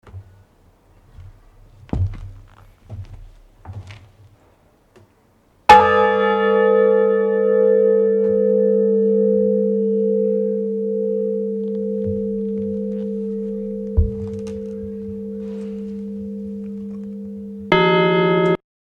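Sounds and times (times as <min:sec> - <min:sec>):
bell ringing: 0:05.7 - 0:18.6.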